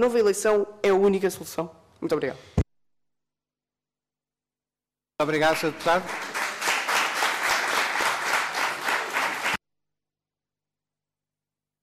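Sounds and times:
speech: 0:00.0 - 0:02.6, 0:05.2 - 0:06.2
audience applause in a parliamentary committee: 0:05.4 - 0:09.6.

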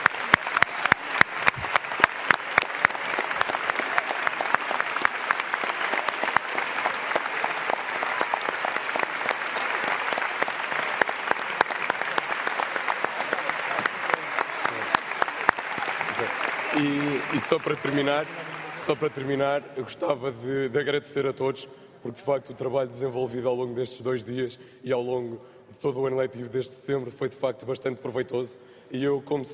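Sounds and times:
audience applause: 0:00.0 - 0:19.6
speech: 0:16.8 - 0:29.5.

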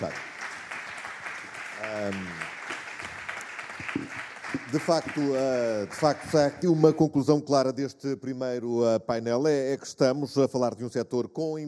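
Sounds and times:
speech: 0:00.0 - 0:00.3, 0:01.8 - 0:02.6, 0:04.6 - 0:11.6
audience applause: 0:00.0 - 0:07.0.

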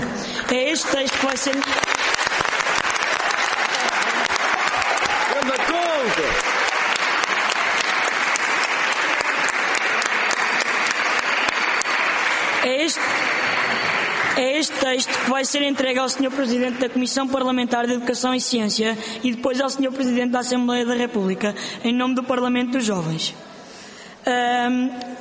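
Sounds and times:
speech: 0:00.5 - 0:01.8, 0:14.9 - 0:23.5, 0:24.2 - 0:25.2
applause approving text by acclamation: 0:00.6 - 0:16.3.

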